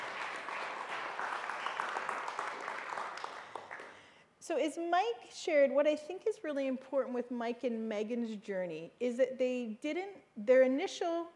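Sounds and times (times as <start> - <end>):
audience applause: 0.0 - 4.0
speech: 4.5 - 11.3.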